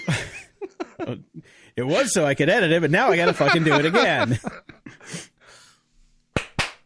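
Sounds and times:
laughter: 0:00.0 - 0:01.4, 0:02.8 - 0:05.0
speech: 0:01.0 - 0:05.3
loud sharp hand claps as recording sync marker: 0:06.3 - 0:06.8.

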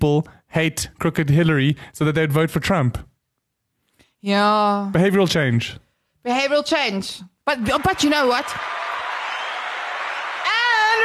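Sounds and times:
speech: 0:00.0 - 0:03.1, 0:04.2 - 0:08.8
applause sound effect: 0:07.6 - 0:11.0.

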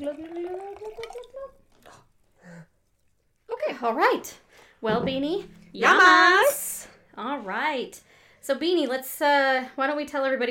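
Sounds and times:
wine glugging from a bottle into a glass: 0:00.0 - 0:02.0
speech: 0:03.8 - 0:06.6, 0:07.2 - 0:10.4.

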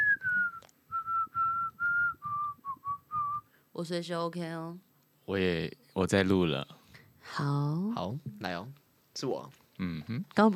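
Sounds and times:
person whistling: 0:00.0 - 0:03.5
speech: 0:03.8 - 0:10.5.

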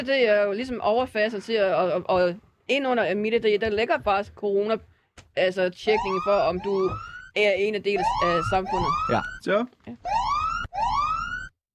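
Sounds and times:
speech: 0:00.0 - 0:10.2
siren-like online timer alarm: 0:05.8 - 0:11.5.

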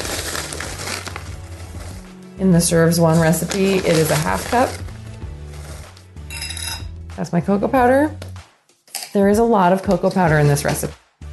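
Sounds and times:
rolled oats pouring into a nonstick skillet: 0:00.0 - 0:02.3, 0:02.9 - 0:06.0
speech: 0:02.4 - 0:04.9, 0:07.2 - 0:08.2, 0:09.2 - 0:11.0.

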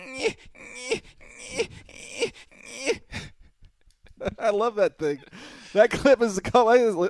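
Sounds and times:
man imitating whining and crying: 0:00.0 - 0:03.3
speech: 0:00.2 - 0:01.1, 0:04.5 - 0:07.0.

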